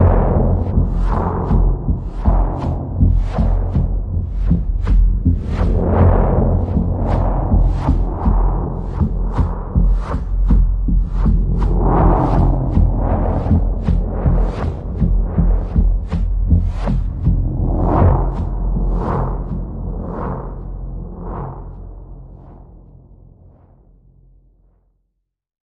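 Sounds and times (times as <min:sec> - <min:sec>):
mysterious pulse in the key of F: 0:00.0 - 0:24.4.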